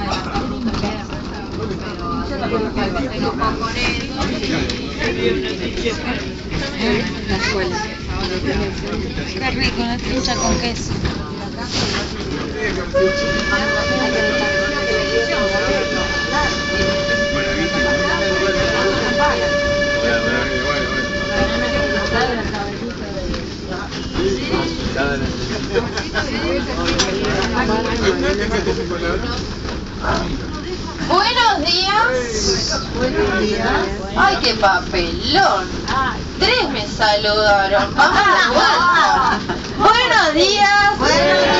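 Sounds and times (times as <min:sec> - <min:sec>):
old steam train rattling: 0:00.0 - 0:41.5
speech: 0:02.3 - 0:14.6, 0:25.7 - 0:30.4, 0:31.1 - 0:41.5
old steam train horn: 0:12.9 - 0:22.8.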